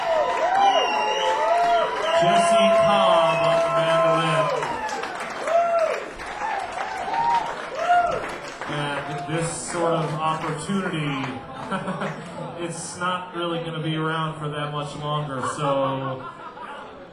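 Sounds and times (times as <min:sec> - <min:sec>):
audience applause: 0:00.0 - 0:12.4
speech: 0:10.4 - 0:16.4
laughter: 0:10.9 - 0:13.0, 0:15.3 - 0:17.1.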